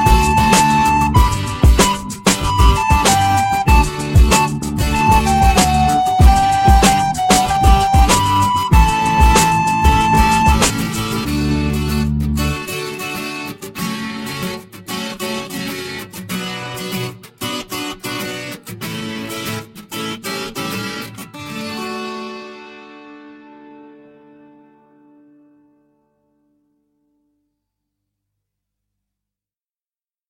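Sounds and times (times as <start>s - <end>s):
fast flabiol tune: 0.0s - 12.9s.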